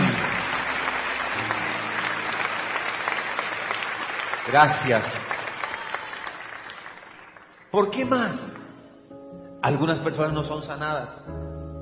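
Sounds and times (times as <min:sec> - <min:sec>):
audience applause: 0:00.0 - 0:08.3
speech: 0:04.5 - 0:05.4, 0:07.7 - 0:08.6, 0:09.6 - 0:11.5.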